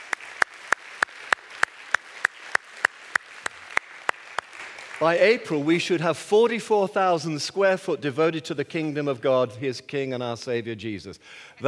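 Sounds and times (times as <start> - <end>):
audience clapping in unison: 0.0 - 5.9
speech: 5.0 - 11.6.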